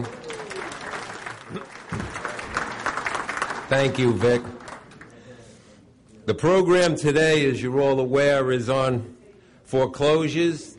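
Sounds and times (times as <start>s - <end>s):
audience applause: 0.0s - 5.2s
speech: 3.7s - 4.6s, 6.3s - 10.7s.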